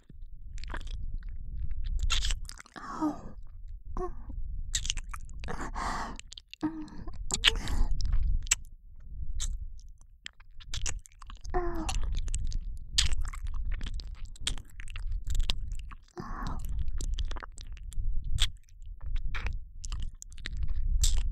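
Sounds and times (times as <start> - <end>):
left ear licking loop: 0.5 - 3.5, 4.7 - 8.7, 9.4 - 21.3
whispering in the left ear: 6.6 - 8.0, 16.2 - 16.7.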